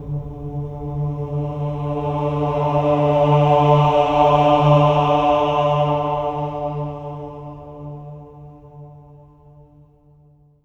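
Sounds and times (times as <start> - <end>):
choir swelling ahs on D3: 0.0 - 8.2.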